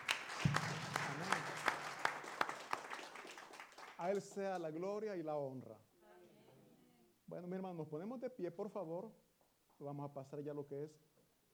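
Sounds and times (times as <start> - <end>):
audience applause: 0.0 - 4.4
speech: 4.0 - 5.9, 7.3 - 9.2, 9.8 - 11.1.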